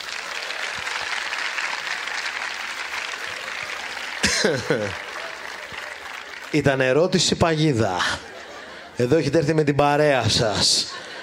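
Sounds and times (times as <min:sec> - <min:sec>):
audience applause: 0:00.0 - 0:08.6
laughter: 0:03.2 - 0:06.1, 0:07.7 - 0:11.2
speech: 0:04.4 - 0:05.0, 0:06.5 - 0:08.3, 0:09.0 - 0:11.1.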